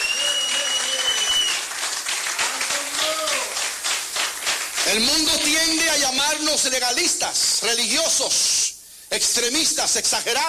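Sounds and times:
audience applauding loudly: 0:00.0 - 0:06.1
speech: 0:04.9 - 0:10.4.

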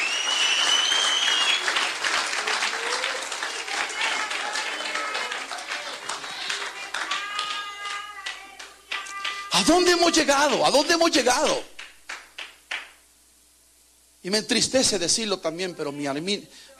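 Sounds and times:
audience applauding loudly: 0:00.0 - 0:13.0
speech: 0:09.6 - 0:11.7, 0:14.2 - 0:16.7.

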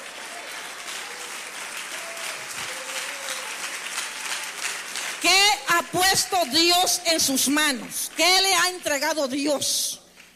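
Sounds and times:
audience applauding: 0:00.0 - 0:09.1
speech: 0:05.2 - 0:10.0.

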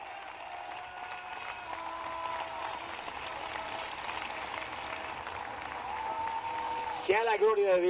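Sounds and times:
audience applauding: 0:00.0 - 0:07.8
speech: 0:07.1 - 0:07.8.

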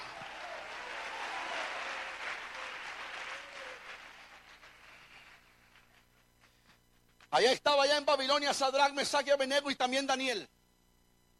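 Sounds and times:
audience applause: 0:00.0 - 0:06.2
speech: 0:07.3 - 0:10.6.

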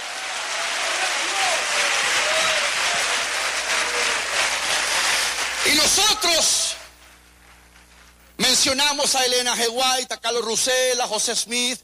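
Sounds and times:
crowd applause: 0:00.0 - 0:07.0
speech: 0:05.9 - 0:06.7, 0:08.6 - 0:11.8.

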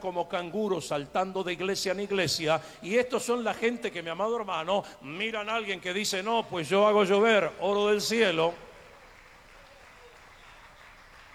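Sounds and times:
speech: 0:00.0 - 0:08.7
faint scattered clapping from a church crowd: 0:08.0 - 0:11.3.

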